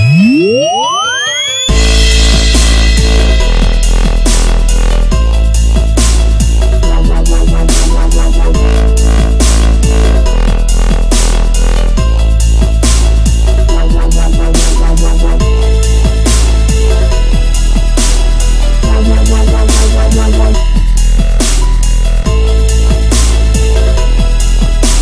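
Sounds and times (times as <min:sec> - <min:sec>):
DJ remix with bass: 0:00.0 - 0:24.9.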